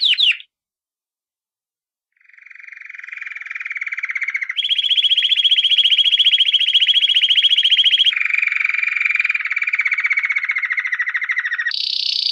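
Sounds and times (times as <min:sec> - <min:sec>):
canary singing trills: 0:00.0 - 0:00.5, 0:02.2 - 0:12.3.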